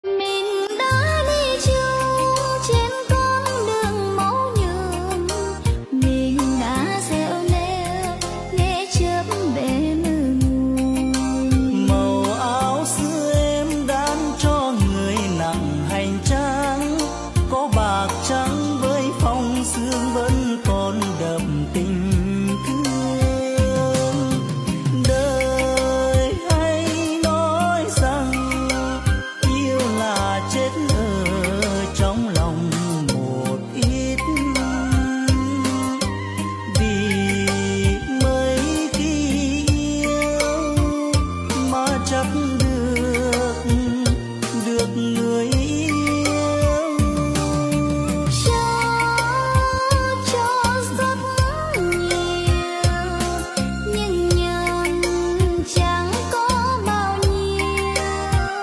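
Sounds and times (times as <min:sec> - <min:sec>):
Vietnamese golden music medley: 0:00.0 - 0:58.6.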